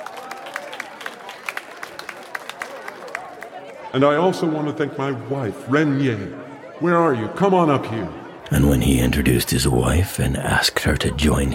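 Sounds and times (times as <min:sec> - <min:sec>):
audience clapping: 0:00.0 - 0:03.9
low murmur of crowd voices: 0:00.0 - 0:11.5
speech: 0:03.9 - 0:11.5.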